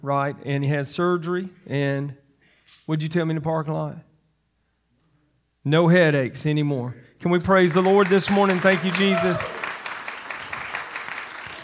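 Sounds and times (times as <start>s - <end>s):
speech: 0.0s - 2.2s, 2.9s - 4.1s, 5.6s - 9.6s
audience clapping hands in praise: 7.4s - 11.6s.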